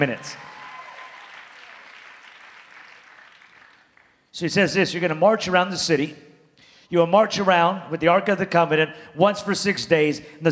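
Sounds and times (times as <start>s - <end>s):
speech: 0.0s - 0.5s, 4.4s - 6.3s, 6.9s - 10.4s
audience clapping: 0.0s - 4.3s.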